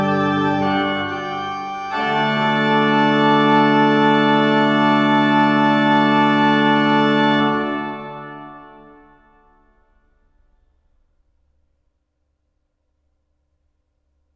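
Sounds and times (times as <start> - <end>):
organ tuning: 0.0 - 9.8.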